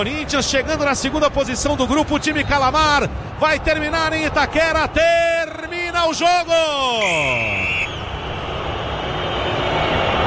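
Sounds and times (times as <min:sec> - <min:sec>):
speech: 0:00.0 - 0:07.7
stadium crowd booing: 0:03.4 - 0:10.2.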